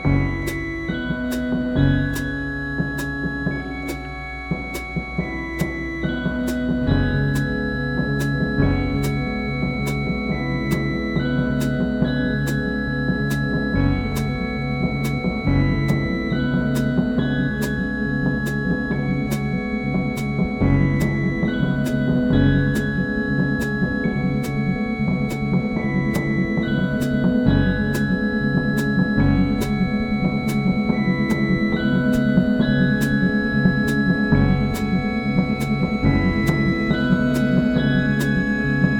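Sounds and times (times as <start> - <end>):
drum kit: 0.0 - 38.9
stereo music on Farfisa Compact Duo Deluxe: 0.0 - 38.9.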